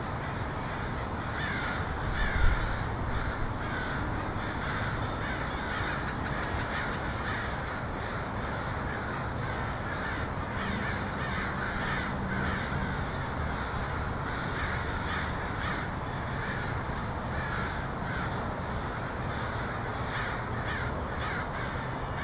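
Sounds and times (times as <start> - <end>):
many crows cawing: 0.0 - 22.2.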